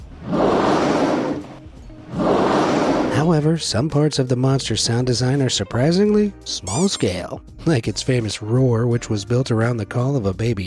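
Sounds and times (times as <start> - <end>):
whale blowhole breath: 0.0 - 3.3
speech: 3.2 - 10.6.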